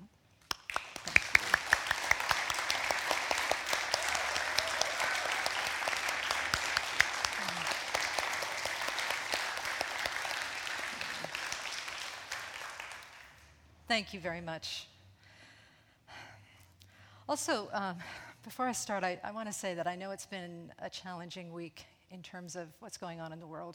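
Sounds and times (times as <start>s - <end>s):
audience applause: 0.5s - 13.4s
speech: 13.9s - 14.9s, 17.3s - 23.7s.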